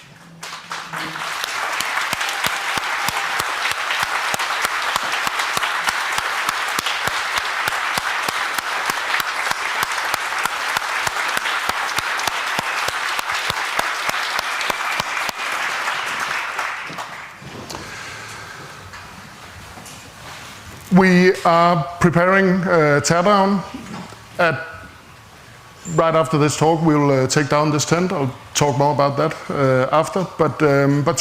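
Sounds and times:
audience applauding volunteers: 0.0 - 18.2
speech: 0.9 - 1.4, 21.0 - 23.8, 24.4 - 24.7, 25.9 - 31.2.

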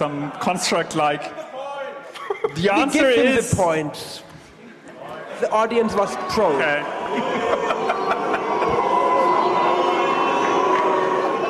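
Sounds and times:
speech: 0.0 - 1.5, 2.3 - 4.3, 5.4 - 7.9
laughter: 2.0 - 3.6, 6.5 - 11.4
audience applauding loudly: 6.4 - 11.4.

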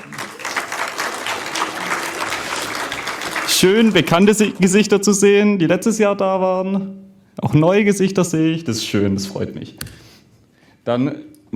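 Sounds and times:
audience applause: 0.0 - 5.0
speech: 3.6 - 10.0, 10.8 - 11.5.

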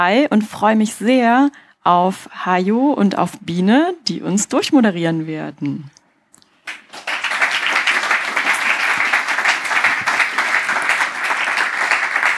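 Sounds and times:
speech: 0.0 - 6.0
audience applause: 6.7 - 12.3.

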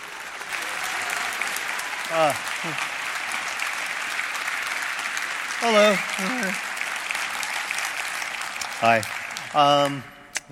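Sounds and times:
audience applause: 0.0 - 10.1
speech: 2.1 - 3.0, 5.6 - 6.7, 8.8 - 10.5.

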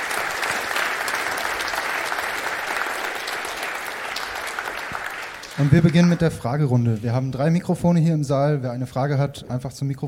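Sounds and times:
audience applause: 0.0 - 6.6
speech: 5.6 - 10.0.

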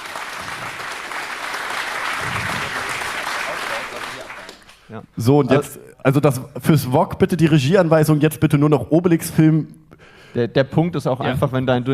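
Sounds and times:
audience applauding loudly: 0.0 - 4.9
speech: 4.2 - 11.9.

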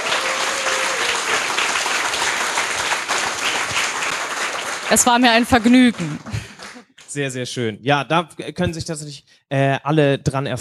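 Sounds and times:
audience applause: 0.0 - 6.8
speech: 4.9 - 6.3, 7.1 - 10.5.

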